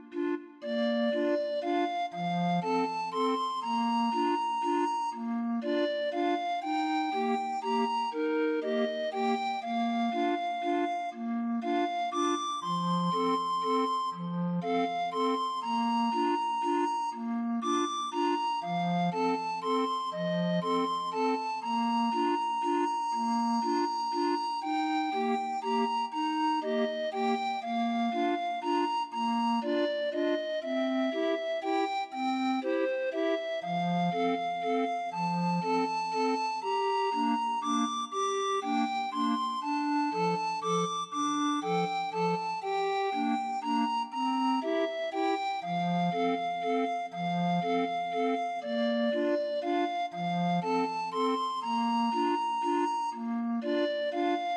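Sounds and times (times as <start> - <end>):
20 note grind organ playing: 0.2 - 54.5.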